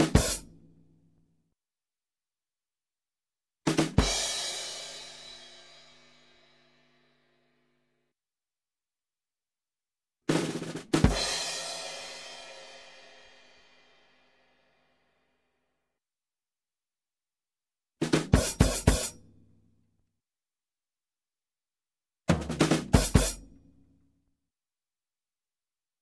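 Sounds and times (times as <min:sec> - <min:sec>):
music: 0:00.0 - 0:01.5, 0:03.7 - 0:08.1, 0:10.3 - 0:16.0, 0:18.0 - 0:19.9, 0:22.3 - 0:24.3
drum accents: 0:10.3 - 0:11.7, 0:22.3 - 0:23.4.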